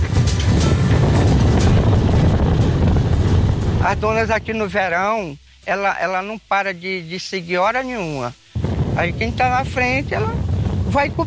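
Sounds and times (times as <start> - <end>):
strong wind buffeting the microphone: 0.0 - 4.9, 8.5 - 11.2
speech: 3.9 - 8.4, 9.0 - 11.2.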